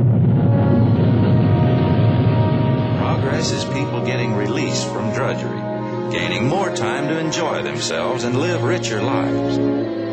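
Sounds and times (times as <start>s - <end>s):
rocket roar: 0.0s - 6.5s
speech: 6.4s - 10.0s.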